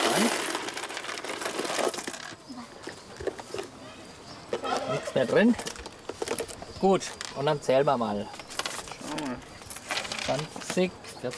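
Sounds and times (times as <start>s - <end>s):
coins shaken out of a container: 0.0s - 2.4s, 8.4s - 10.8s
speech: 5.2s - 5.8s, 6.8s - 8.4s, 10.3s - 11.3s.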